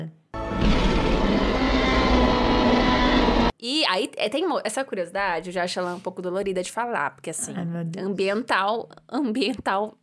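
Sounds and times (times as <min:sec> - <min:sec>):
Tyrannosaurus rex roar film sound effect: 0:00.4 - 0:03.5
speech: 0:03.6 - 0:10.0.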